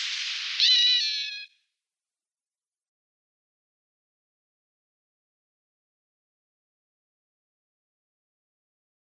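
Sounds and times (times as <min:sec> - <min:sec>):
corn crake calling: 0:00.6 - 0:01.5.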